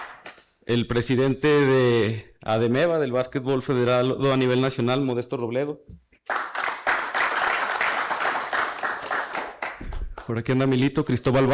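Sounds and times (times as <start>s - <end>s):
speech: 0.7s - 6.0s, 10.3s - 11.5s
audience applause: 6.3s - 10.3s.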